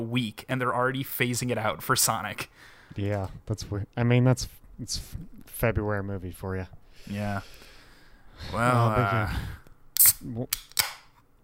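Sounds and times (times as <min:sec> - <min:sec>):
speech: 0:00.0 - 0:07.6, 0:08.4 - 0:09.6, 0:10.2 - 0:10.7
tall drink can being opened: 0:10.0 - 0:11.1.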